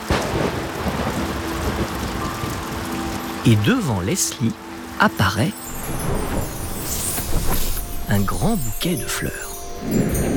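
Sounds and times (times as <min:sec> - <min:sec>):
thunderclap in a storm: 0:00.0 - 0:02.8, 0:05.8 - 0:07.8
rain: 0:00.0 - 0:10.3
speech: 0:03.4 - 0:05.8, 0:08.1 - 0:10.2.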